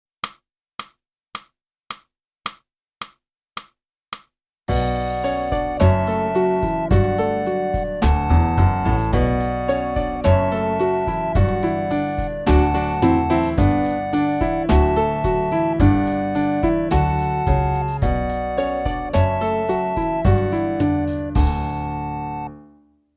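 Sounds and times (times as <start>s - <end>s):
flute: 4.7s - 22.6s.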